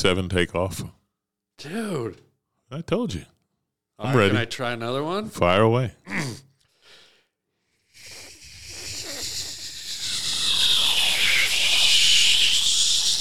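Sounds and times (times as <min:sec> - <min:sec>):
speech: 0:00.0 - 0:01.0, 0:01.6 - 0:03.3, 0:04.0 - 0:06.5
voice imitating fighter jet takeoff: 0:08.0 - 0:13.1.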